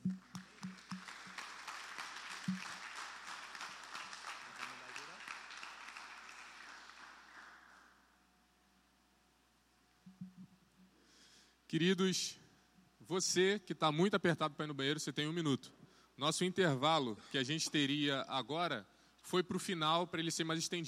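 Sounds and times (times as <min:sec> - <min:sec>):
audience applause: 0:00.0 - 0:07.9
speech: 0:11.7 - 0:12.4, 0:13.1 - 0:20.8.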